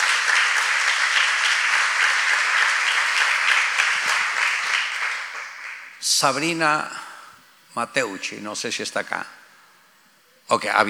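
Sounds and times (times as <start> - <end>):
audience applause: 0.0 - 6.0
speech: 6.2 - 7.0, 7.8 - 9.4, 10.5 - 10.8.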